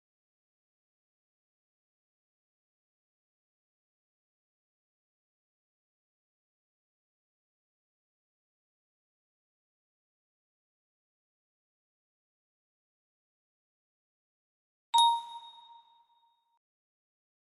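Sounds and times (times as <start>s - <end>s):
music box melody: 15.0s - 15.7s.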